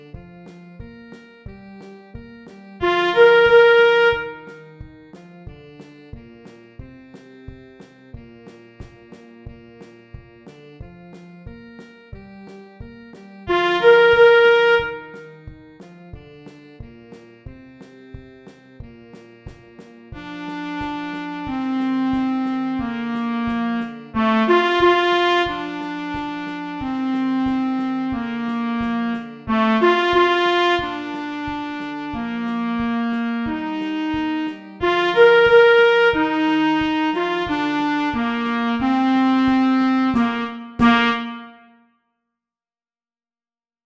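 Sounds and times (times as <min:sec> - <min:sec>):
trumpet: 0:00.0 - 0:05.2, 0:08.4 - 0:15.5, 0:19.1 - 0:41.9
clarinet: 0:00.0 - 0:41.8
saxophone: 0:00.0 - 0:41.8.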